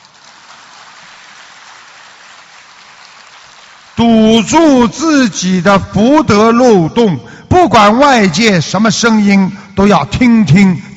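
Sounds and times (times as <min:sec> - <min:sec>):
crowd applauding: 0:00.0 - 0:04.9
speech: 0:04.0 - 0:10.9.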